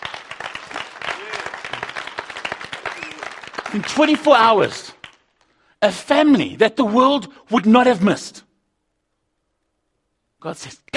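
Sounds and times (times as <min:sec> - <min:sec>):
audience clapping: 0:00.0 - 0:05.6
speech: 0:03.7 - 0:05.0, 0:05.8 - 0:08.4, 0:10.4 - 0:10.9.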